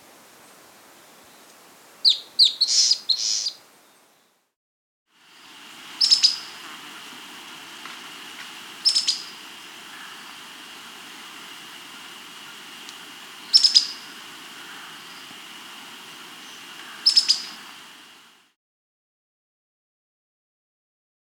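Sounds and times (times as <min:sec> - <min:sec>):
long-tailed antbird Drymophila caudata calling: 0:02.0 - 0:03.6, 0:05.4 - 0:18.4.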